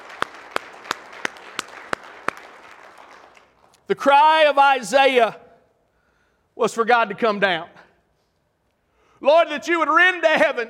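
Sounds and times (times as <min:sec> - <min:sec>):
audience hand clapping: 0:00.0 - 0:03.9
speech: 0:03.9 - 0:05.4, 0:06.6 - 0:07.8, 0:09.2 - 0:10.6.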